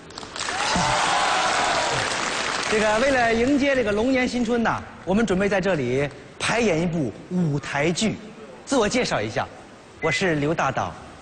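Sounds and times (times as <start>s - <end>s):
audience applause at a Lunar New Year stage show: 0.1s - 3.2s
speech: 2.7s - 11.0s.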